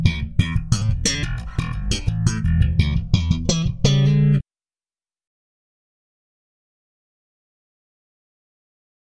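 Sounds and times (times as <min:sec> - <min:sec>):
electric bass: 0:00.0 - 0:04.4.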